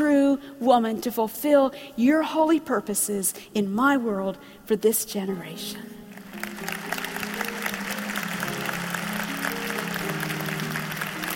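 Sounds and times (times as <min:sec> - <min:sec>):
speech: 0:00.4 - 0:06.0, 0:06.6 - 0:06.8
audience applause: 0:06.2 - 0:11.3.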